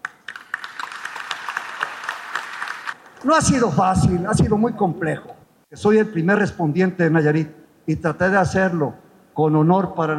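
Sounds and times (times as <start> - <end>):
audience applause: 0.0 - 3.2
speech: 3.2 - 10.1.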